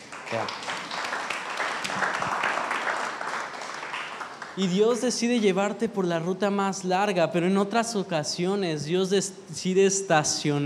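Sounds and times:
audience applauding: 0.0s - 5.1s
speech: 0.3s - 0.6s, 4.6s - 10.6s.

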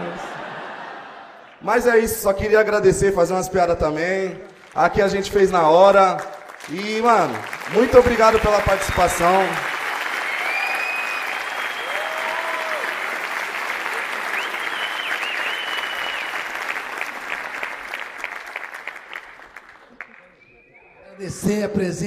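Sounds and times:
laughter: 0.0s - 1.6s
speech: 1.6s - 9.7s, 21.4s - 22.0s
audience applause: 4.2s - 21.0s
cheers: 6.6s - 19.0s
whistles: 10.2s - 12.4s, 14.2s - 16.6s, 20.0s - 21.1s.

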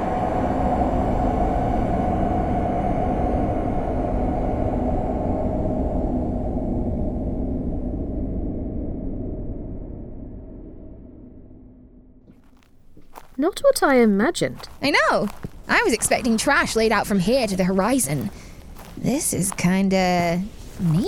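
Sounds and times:
aircraft engine drone during flight shortly before landing: 0.0s - 9.1s
speech: 13.4s - 21.0s.

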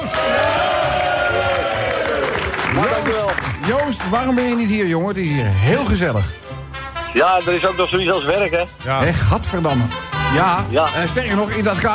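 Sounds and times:
studio audience applause: 0.0s - 4.7s
speech: 3.9s - 6.5s, 7.1s - 11.9s.

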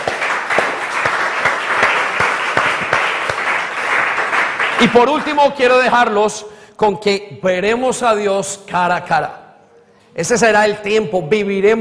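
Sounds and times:
applause: 0.0s - 5.6s
speech: 4.8s - 9.4s, 10.2s - 11.7s.

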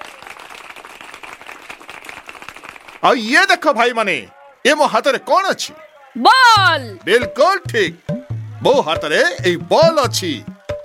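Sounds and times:
audience clapping at a street magic show: 0.0s - 3.7s, 6.2s - 10.8s
speech: 3.0s - 10.5s.

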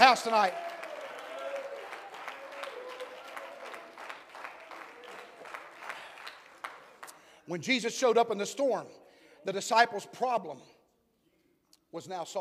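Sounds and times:
speech: 0.0s - 0.7s, 7.5s - 10.8s, 11.9s - 12.4s
crowd clapping: 0.0s - 7.4s.

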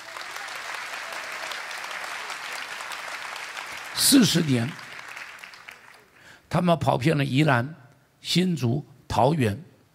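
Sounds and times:
audience applause: 0.0s - 6.3s
speech: 4.0s - 4.8s, 6.5s - 9.7s.

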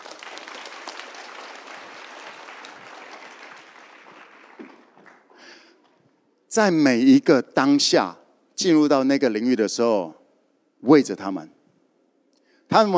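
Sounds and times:
audience applause: 0.0s - 5.7s
speech: 6.6s - 10.2s, 10.8s - 11.6s, 12.7s - 12.9s.

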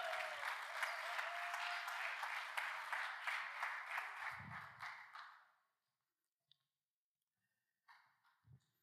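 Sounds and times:
crowd applause: 0.0s - 5.2s.

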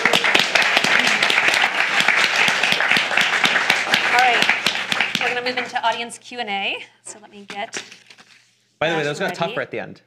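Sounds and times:
audience applause for a speaker at a talk: 0.0s - 5.8s
speech: 5.5s - 8.0s, 8.8s - 10.0s.

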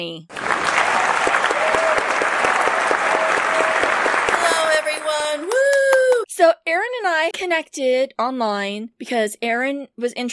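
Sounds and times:
speech: 0.0s - 0.4s, 6.4s - 10.3s
crowd clapping to welcome a podcast guest: 0.3s - 6.3s.

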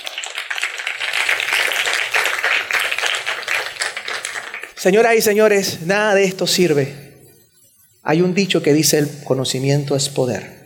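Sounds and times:
audience applause: 0.0s - 4.8s
speech: 4.8s - 7.0s, 8.0s - 10.6s.

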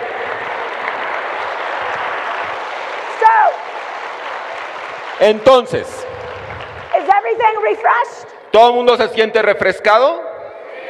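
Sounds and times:
audience applause: 0.0s - 7.7s
speech: 5.2s - 6.0s, 7.2s - 10.2s.

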